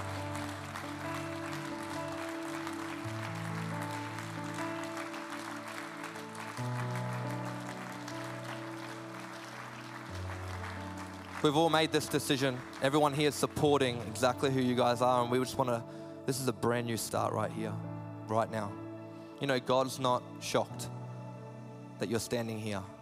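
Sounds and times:
audience clapping: 0.0s - 15.2s
speech: 11.4s - 18.8s, 19.4s - 21.0s, 22.0s - 22.9s.

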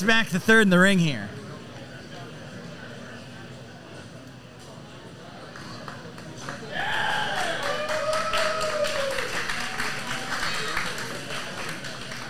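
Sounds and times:
speech: 0.0s - 1.4s
crowd applause: 6.2s - 12.2s
whistles and cheers: 6.8s - 9.6s.

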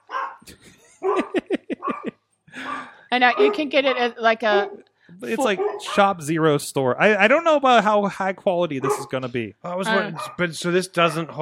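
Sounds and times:
dogs barking: 0.0s - 6.3s, 8.7s - 11.3s
laughter: 0.5s - 3.5s, 5.2s - 11.3s
soft murmuring: 0.5s - 11.3s
speech: 3.2s - 11.3s.

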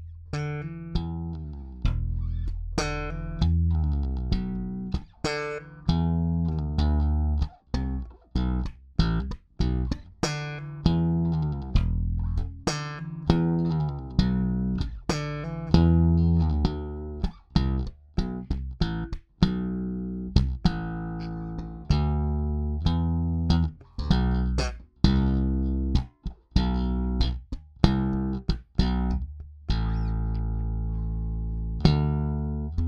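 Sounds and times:
bass guitar played solo with a slap technique: 0.0s - 32.8s.

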